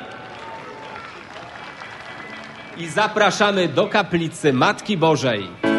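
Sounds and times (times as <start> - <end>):
crowd applauding arriving pilgrim group: 0.0 - 4.0
speech: 2.8 - 5.6.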